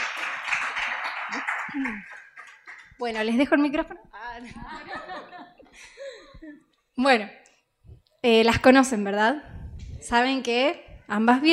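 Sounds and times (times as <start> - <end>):
audience clapping: 0.0 - 3.7
laughter: 0.8 - 2.5, 4.4 - 6.6
speech: 1.7 - 2.2, 3.0 - 5.0, 5.8 - 7.4, 8.2 - 11.5.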